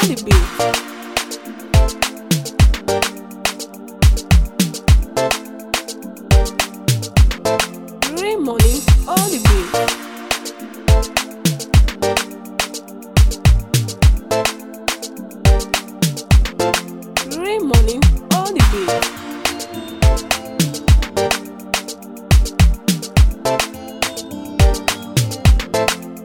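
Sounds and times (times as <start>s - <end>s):
Afro highlife beat: 0.0s - 26.2s.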